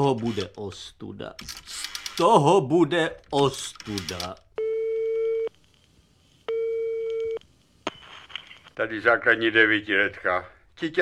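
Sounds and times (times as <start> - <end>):
speech: 0.0 - 4.4, 8.8 - 10.9
telephone line tone while calling: 4.6 - 5.5, 6.5 - 7.4.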